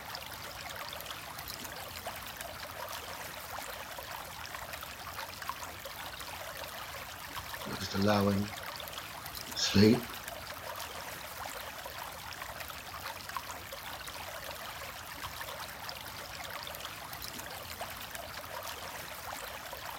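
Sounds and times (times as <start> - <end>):
flowing stream water: 0.0 - 19.9
speech: 7.9 - 8.6, 9.7 - 10.2.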